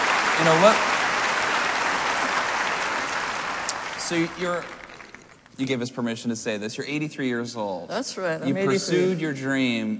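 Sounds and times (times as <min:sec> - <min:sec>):
audience applause: 0:00.0 - 0:05.6
speech: 0:00.4 - 0:00.9, 0:04.1 - 0:04.8, 0:05.6 - 0:09.9.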